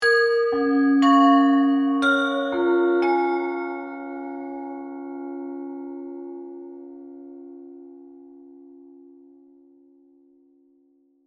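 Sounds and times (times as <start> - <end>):
mysterious Chinese oriental bells accent: 0.0 - 7.9.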